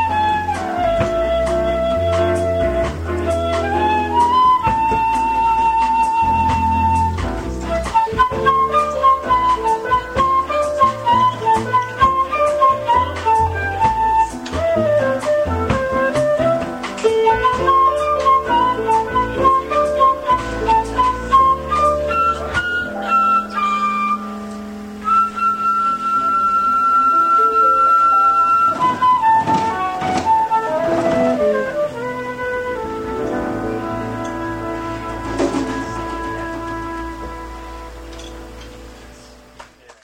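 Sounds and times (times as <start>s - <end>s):
latin jazz music: 0.0s - 39.9s.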